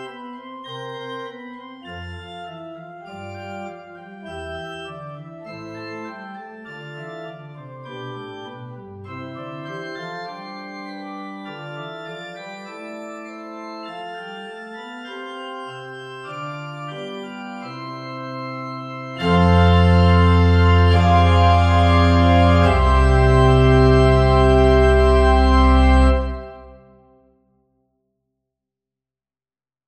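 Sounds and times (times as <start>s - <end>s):
fugue: 18.6s - 27.0s.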